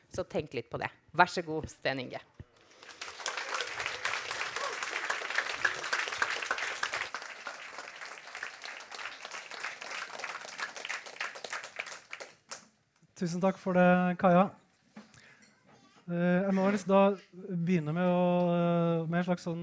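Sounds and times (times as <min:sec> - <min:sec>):
speech: 0:00.2 - 0:02.4, 0:13.2 - 0:14.6, 0:16.1 - 0:19.6
audience applause: 0:02.6 - 0:12.7.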